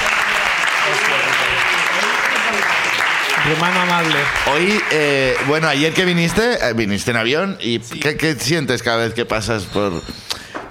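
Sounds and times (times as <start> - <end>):
audience applause: 0.0 - 6.5
speech: 3.5 - 10.6.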